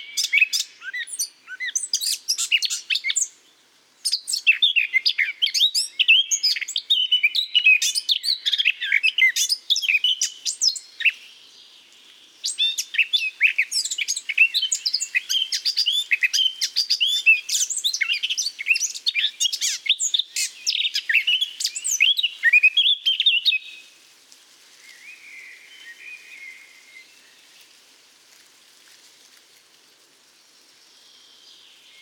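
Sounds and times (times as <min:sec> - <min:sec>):
Eurasian blackcap singing: 0:00.0 - 0:03.4, 0:04.0 - 0:11.3, 0:12.4 - 0:23.8.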